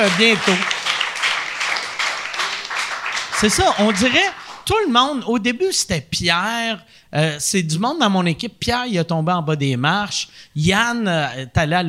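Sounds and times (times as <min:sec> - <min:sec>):
speech: 0:00.0 - 0:00.8, 0:03.4 - 0:11.8
crowd applauding: 0:00.0 - 0:04.8.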